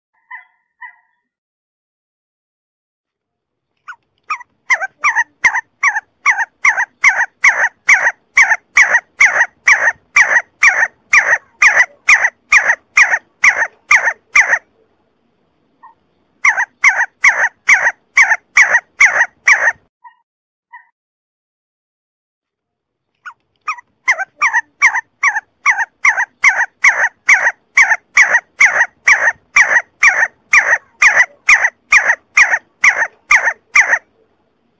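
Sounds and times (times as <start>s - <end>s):
see-see partridge calling: 3.8s - 14.7s, 15.8s - 20.9s, 23.2s - 34.1s.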